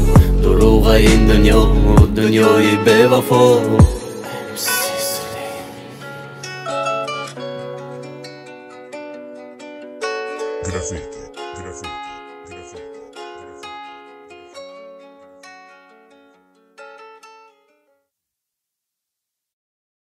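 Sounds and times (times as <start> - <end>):
rap music: 0.0 - 5.4, 10.6 - 13.8.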